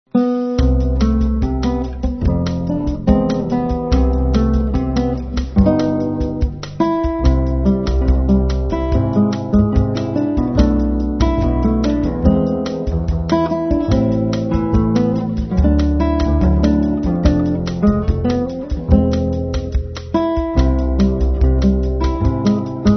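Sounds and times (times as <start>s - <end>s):
easy bossa nova music: 0.1s - 22.9s.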